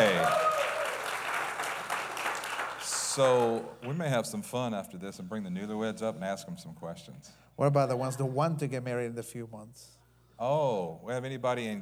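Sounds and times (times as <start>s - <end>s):
audience applause: 0.0s - 4.0s
speech: 3.2s - 11.8s.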